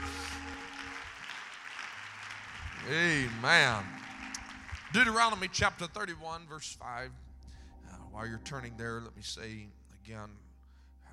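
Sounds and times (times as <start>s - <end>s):
audience clapping hands: 0.0s - 6.6s
speech: 2.8s - 4.0s, 4.9s - 7.2s, 8.2s - 10.4s.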